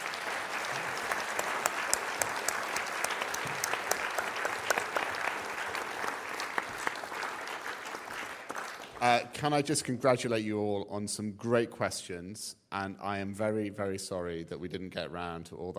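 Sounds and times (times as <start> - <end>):
audience round of applause: 0.0 - 9.4
speech: 9.0 - 15.7.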